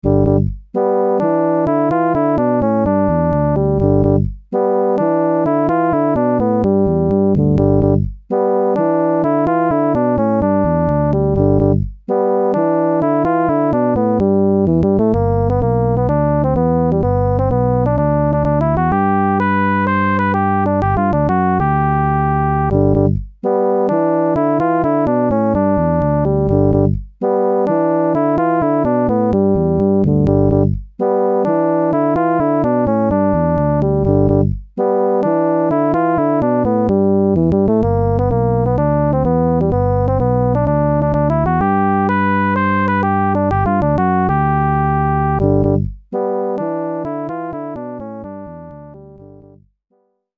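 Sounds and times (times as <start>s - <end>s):
arcade game main theme music: 0.0s - 49.6s.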